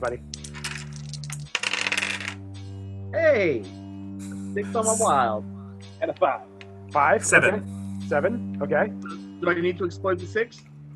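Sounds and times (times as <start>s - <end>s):
speech: 0.0s - 0.4s, 3.1s - 3.8s, 4.5s - 10.7s
dice clattering across a hard surface: 0.3s - 2.4s.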